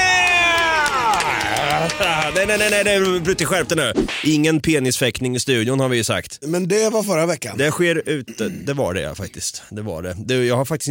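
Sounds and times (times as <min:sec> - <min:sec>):
whooping voices: 0:00.0 - 0:02.7
crowd cheering and clapping: 0:00.0 - 0:03.8
speech: 0:02.1 - 0:10.9.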